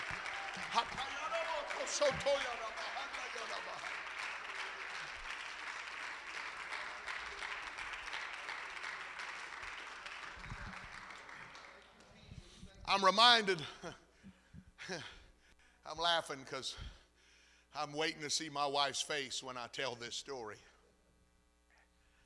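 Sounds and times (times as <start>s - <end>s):
laughter: 0.0s - 4.9s
audience clapping hands: 0.0s - 12.2s
speech: 1.8s - 2.8s, 12.9s - 14.0s, 14.9s - 15.2s, 15.9s - 17.0s, 17.8s - 20.7s.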